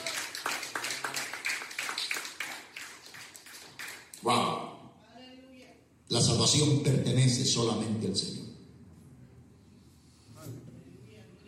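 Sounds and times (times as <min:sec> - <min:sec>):
audience applause: 0:00.0 - 0:04.0
speech: 0:04.2 - 0:04.5, 0:06.3 - 0:08.5.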